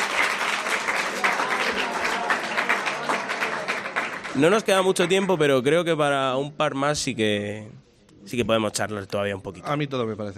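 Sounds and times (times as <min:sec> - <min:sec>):
audience applause: 0:00.0 - 0:05.5
speech: 0:04.4 - 0:10.3.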